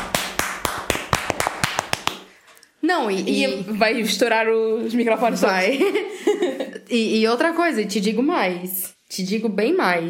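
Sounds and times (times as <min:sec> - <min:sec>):
clapping sound effect sample: 0:00.0 - 0:02.3
speech: 0:02.9 - 0:10.0
laughter: 0:05.7 - 0:06.8.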